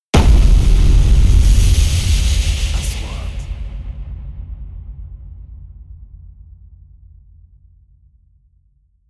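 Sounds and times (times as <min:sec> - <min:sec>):
3D trailer sound effects: 0:00.2 - 0:05.6.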